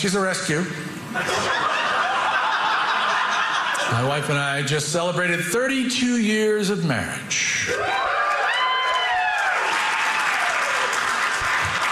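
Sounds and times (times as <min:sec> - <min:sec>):
speech: 0:00.0 - 0:01.8, 0:03.9 - 0:08.1
laughter: 0:01.1 - 0:04.2
cheering and whoops: 0:07.7 - 0:11.2
audience applause: 0:07.8 - 0:11.9.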